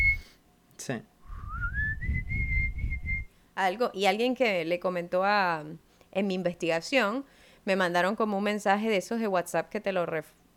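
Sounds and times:
whistled rising notes: 0:00.0 - 0:00.3, 0:01.2 - 0:03.3
speech: 0:00.8 - 0:01.1, 0:03.6 - 0:10.4
soft low rumble: 0:01.2 - 0:03.3.

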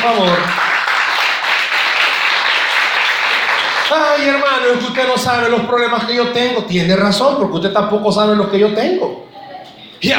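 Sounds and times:
speech: 0:00.0 - 0:00.6, 0:03.9 - 0:09.3, 0:10.0 - 0:10.1
applause: 0:00.0 - 0:04.7.

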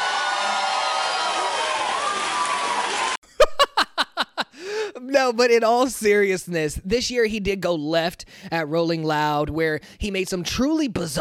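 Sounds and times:
crowd clapping: 0:00.0 - 0:03.2
laughter: 0:03.4 - 0:04.5
speech: 0:05.2 - 0:11.2.

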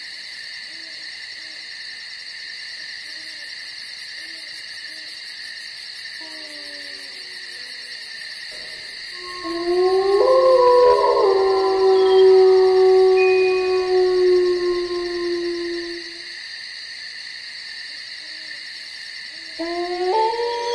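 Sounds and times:
crickets and insects chirping at night: 0:00.0 - 0:20.7
wolves howling in the forest: 0:09.2 - 0:16.3, 0:19.6 - 0:20.7.

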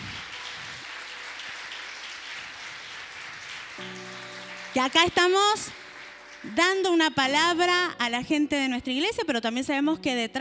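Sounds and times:
crowd clapping: 0:00.0 - 0:07.6
speech: 0:04.7 - 0:05.8, 0:06.4 - 0:10.4.

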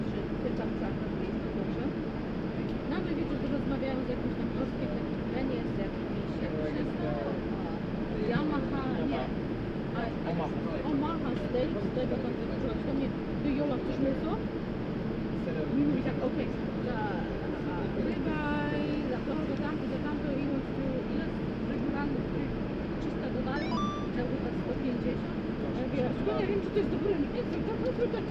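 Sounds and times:
murmur of many voices in an airplane cabin: 0:00.0 - 0:28.3
brief higher tones and clinks: 0:23.6 - 0:24.2.

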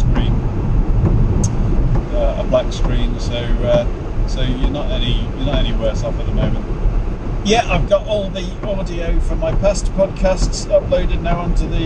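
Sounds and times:
car driving home in the dark: 0:00.0 - 0:11.8
speech: 0:02.6 - 0:06.8, 0:07.4 - 0:11.8.

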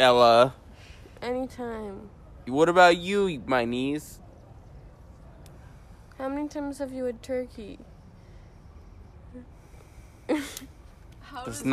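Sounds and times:
speech: 0:00.0 - 0:00.6, 0:01.2 - 0:04.2, 0:06.2 - 0:07.9, 0:10.3 - 0:10.7, 0:11.3 - 0:11.7
deep breathing: 0:08.0 - 0:11.2.

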